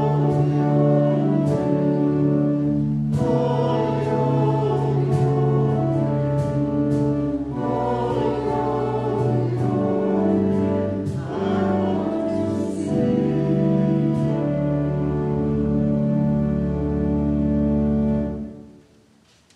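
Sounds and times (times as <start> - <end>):
church choir singing an anthem: 0.0 - 18.5.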